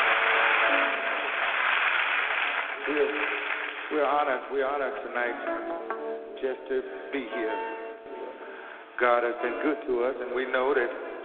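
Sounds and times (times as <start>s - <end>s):
audience applauding: 0.0s - 5.0s
speech: 2.9s - 7.8s, 9.0s - 11.0s.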